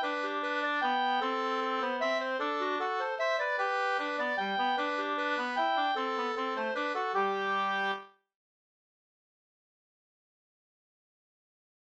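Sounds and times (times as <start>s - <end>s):
waltz in two parts: 0.0s - 8.1s.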